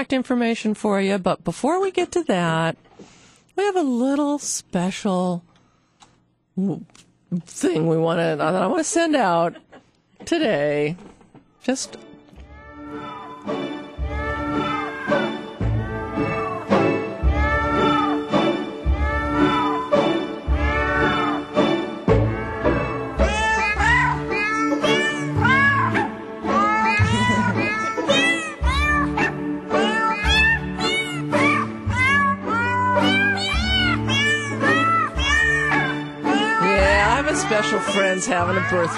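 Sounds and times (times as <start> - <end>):
speech: 0.0 - 5.5, 6.6 - 12.1, 37.6 - 38.9
sampled cat meows arranged into a tune: 12.4 - 13.4, 14.0 - 21.5, 22.2 - 38.9.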